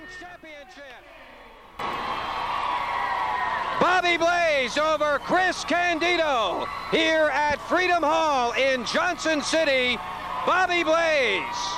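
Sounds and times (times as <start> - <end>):
speech: 0.1 - 2.0, 3.8 - 11.7
wrestling crowd cheering and roaring: 1.0 - 11.7
whoops and shouted voices: 1.1 - 7.3, 9.6 - 11.7.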